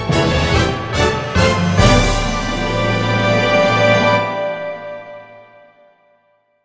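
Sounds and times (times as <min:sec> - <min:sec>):
mission clear jingle: 0:00.2 - 0:06.0.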